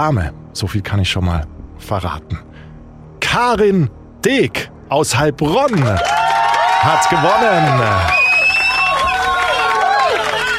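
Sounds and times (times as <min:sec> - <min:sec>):
speech: 0:00.0 - 0:02.5, 0:03.3 - 0:06.2, 0:06.8 - 0:08.2
frenzied cheering in the studio: 0:05.7 - 0:10.5.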